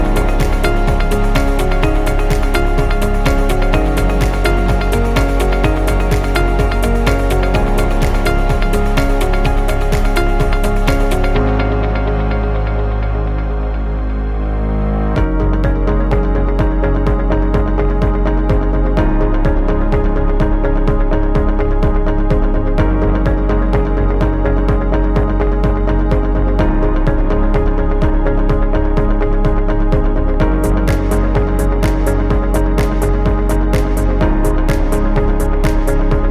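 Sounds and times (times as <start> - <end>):
upbeat corporate music loop: 0.0 - 36.2.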